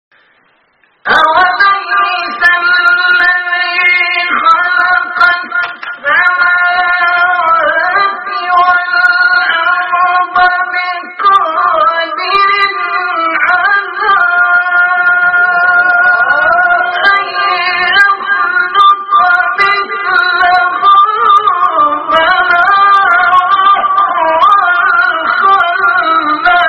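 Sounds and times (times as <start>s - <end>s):
recitation of a verse of scripture: 0.9s - 26.6s.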